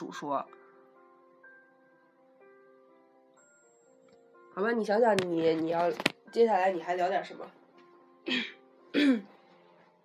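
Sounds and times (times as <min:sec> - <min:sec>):
speech: 0:00.1 - 0:00.6, 0:04.6 - 0:07.6, 0:08.2 - 0:09.3
throat clearing: 0:08.3 - 0:09.3.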